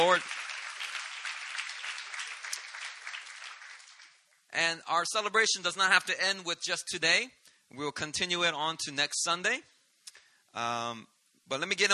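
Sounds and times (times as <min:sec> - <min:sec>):
speech: 0:00.0 - 0:00.5, 0:04.6 - 0:09.7, 0:10.5 - 0:11.9
audience applause: 0:00.0 - 0:04.2.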